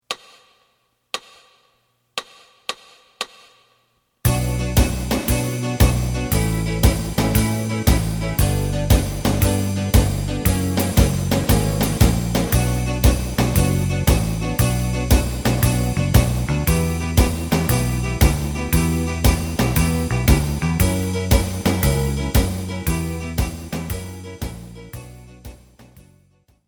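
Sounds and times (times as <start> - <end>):
lead melody: 4.3 - 25.7.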